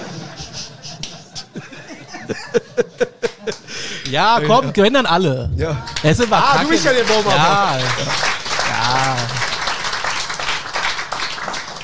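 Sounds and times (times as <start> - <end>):
laughter: 0.0 - 5.1, 6.2 - 9.4
speech: 1.6 - 2.6, 4.1 - 8.3, 8.9 - 9.4
one person clapping in a studio show: 3.2 - 4.2, 5.8 - 11.8.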